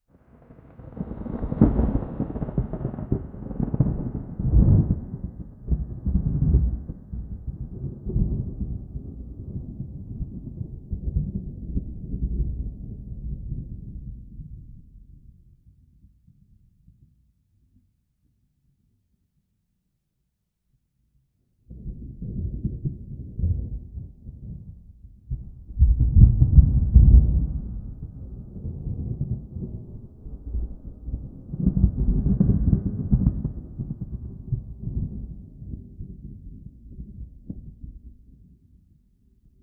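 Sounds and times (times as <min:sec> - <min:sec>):
distant thunder: 0:00.6 - 0:12.9, 0:25.8 - 0:36.2.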